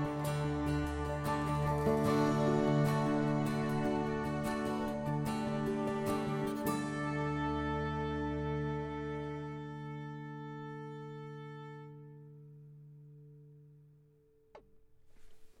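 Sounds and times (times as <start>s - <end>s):
violin playing: 0.0s - 12.0s.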